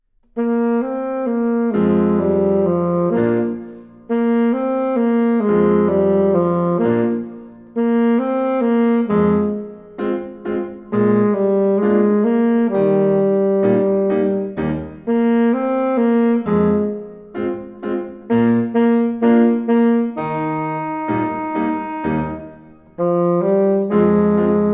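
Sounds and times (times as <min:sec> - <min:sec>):
saxophone playing: 0:00.2 - 0:24.7.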